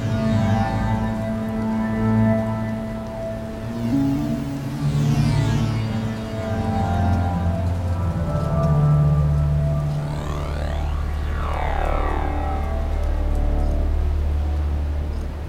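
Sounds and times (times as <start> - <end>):
spaced-out synth drones: 0.0 - 15.4
shimmering synth sweeps: 3.7 - 7.0, 9.4 - 15.0.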